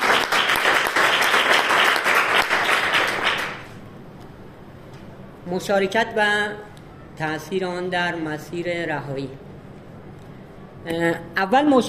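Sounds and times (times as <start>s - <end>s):
audience applause: 0.0s - 3.7s
speech: 5.5s - 9.5s, 10.8s - 11.8s.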